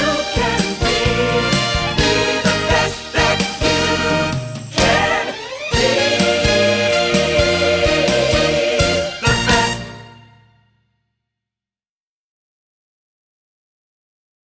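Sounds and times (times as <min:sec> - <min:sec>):
person singing: 0:00.0 - 0:09.8.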